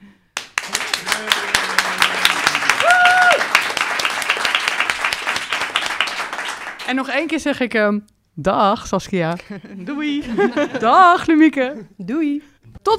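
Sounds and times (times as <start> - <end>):
audience applauding and clapping: 0.4 - 7.0
crowd cheering: 0.6 - 6.8
speech: 6.9 - 12.9
laughter: 9.4 - 11.2.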